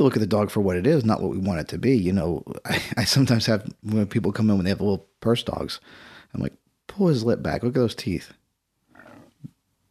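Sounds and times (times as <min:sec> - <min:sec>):
speech: 0:00.0 - 0:08.4
stomach growling: 0:08.9 - 0:09.6.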